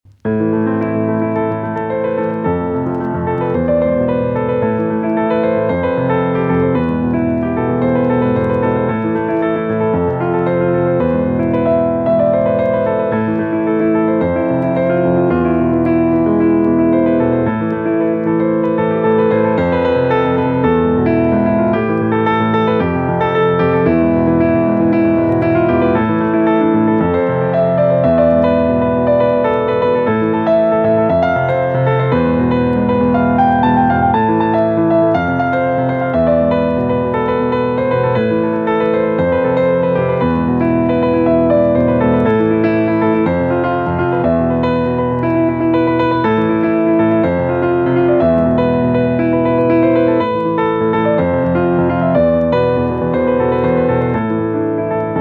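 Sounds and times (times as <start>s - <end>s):
micropiano: 0.0s - 55.1s.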